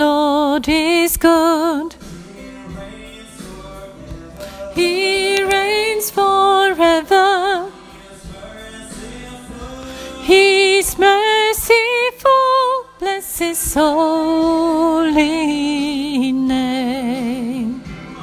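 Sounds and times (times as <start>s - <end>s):
soprano voice: 0.0s - 2.0s, 4.7s - 7.8s, 10.2s - 17.9s
bass: 0.0s - 18.2s.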